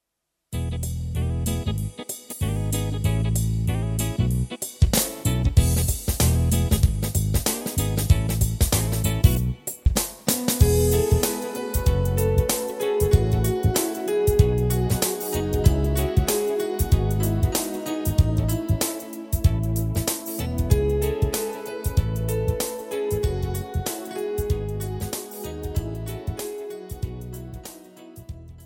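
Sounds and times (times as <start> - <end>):
instrumental music: 0.6 - 28.6.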